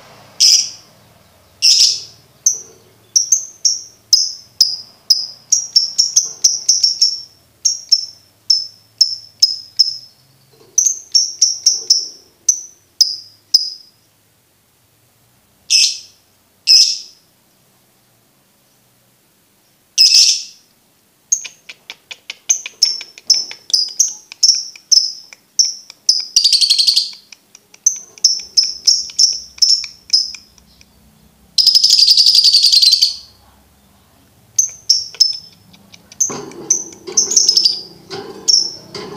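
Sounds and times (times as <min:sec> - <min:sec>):
lovebird chirping: 0:00.4 - 0:14.1, 0:15.7 - 0:17.6, 0:21.3 - 0:39.1.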